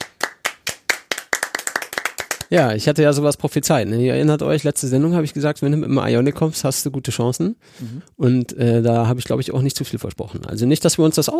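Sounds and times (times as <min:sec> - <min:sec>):
hands clapping: 0:00.0 - 0:02.8
speech: 0:02.5 - 0:11.3.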